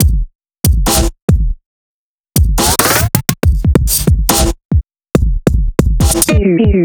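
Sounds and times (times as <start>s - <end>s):
drum: 0.0s - 1.6s, 2.4s - 6.8s.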